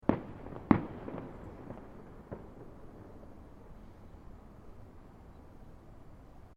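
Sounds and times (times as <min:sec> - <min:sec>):
fireworks with multiple firecrackers exploding: 0:00.0 - 0:03.8.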